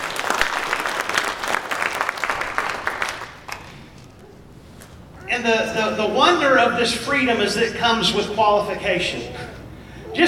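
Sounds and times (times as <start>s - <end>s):
audience clapping: 0.0s - 4.2s
speech: 5.4s - 9.4s.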